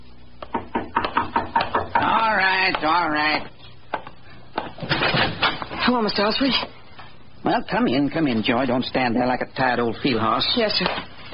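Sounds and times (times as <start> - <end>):
knock at a door: 0.4 - 2.9
speech: 2.3 - 3.6, 4.8 - 6.8, 7.4 - 11.1.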